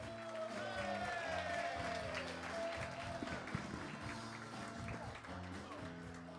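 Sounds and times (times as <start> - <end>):
crowd cheering at a stand-up show: 0.1 - 3.7
audience applause welcoming a comedian at a stand-up show: 0.1 - 5.8.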